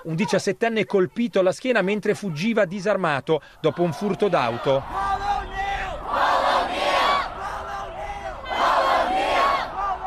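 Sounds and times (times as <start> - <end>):
speech: 0.0 - 5.2
crowd of protesters shouting a name in central Chicago: 3.6 - 10.0.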